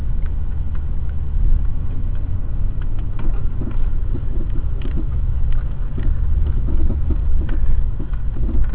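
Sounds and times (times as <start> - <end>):
car engine and dirt road noise: 0.0 - 8.7
worn sway bar bushing and link rattling on a car on a rough dirt road: 0.0 - 8.7.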